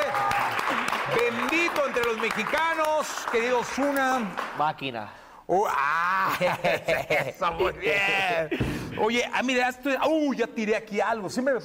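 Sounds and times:
audience applause: 0.0s - 4.6s
speech: 1.3s - 11.6s
laughter: 6.1s - 9.2s.

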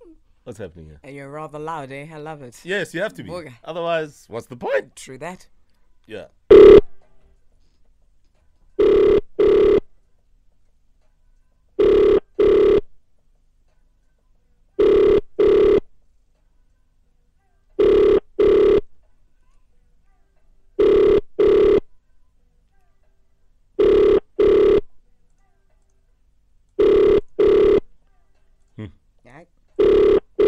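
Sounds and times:
speech: 0.5s - 6.6s
telephone ringing during a wake-up call: 6.5s - 7.0s, 8.8s - 9.9s, 11.8s - 12.9s, 14.8s - 15.9s, 17.8s - 18.9s, 20.8s - 21.9s, 23.8s - 24.9s, 26.8s - 27.9s, 29.8s - 30.4s.

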